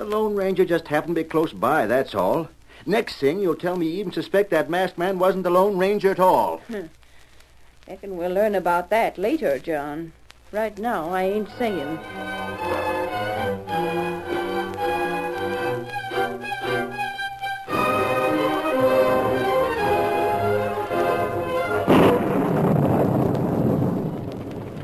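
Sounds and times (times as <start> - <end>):
speech: 0.0 - 7.0, 7.9 - 12.9
pouring rain: 0.0 - 24.8
orchestral music: 11.4 - 22.5
thunderclap: 20.8 - 24.8.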